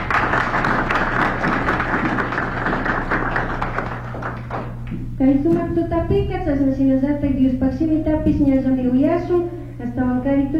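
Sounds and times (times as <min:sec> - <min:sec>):
crowd applauding: 0:00.0 - 0:04.9
speech: 0:05.2 - 0:10.5.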